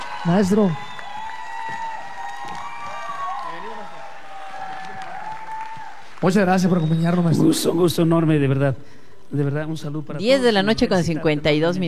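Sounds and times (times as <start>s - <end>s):
audience applause: 0.0s - 7.3s
cheering and voices: 0.0s - 8.1s
speech: 0.2s - 0.9s, 6.2s - 11.8s.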